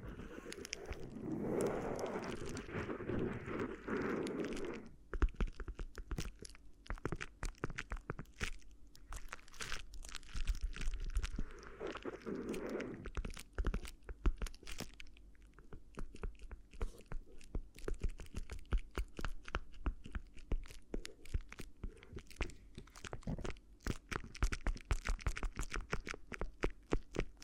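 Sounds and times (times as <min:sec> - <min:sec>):
low steady rumble: 0:00.0 - 0:05.0
crinkly crackling against the ear: 0:00.0 - 0:27.4.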